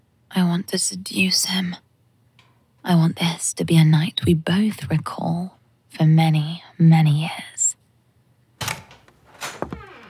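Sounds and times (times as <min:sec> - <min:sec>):
speech: 0:00.4 - 0:01.9, 0:02.8 - 0:07.5
door swinging open: 0:08.6 - 0:10.0.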